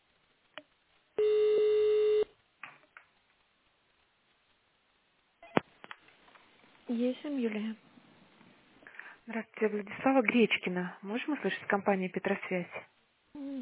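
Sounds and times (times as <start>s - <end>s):
telephone touch-tone dialing of an extension: 1.2s - 2.3s
speech: 6.9s - 7.9s, 9.3s - 12.9s.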